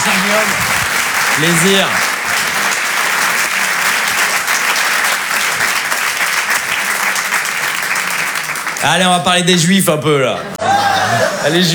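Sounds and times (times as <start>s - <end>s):
audience at a live stage show applauding a performer: 0.0s - 9.5s
speech: 0.2s - 0.7s, 1.4s - 2.1s, 8.8s - 11.7s
laughter: 10.1s - 11.7s.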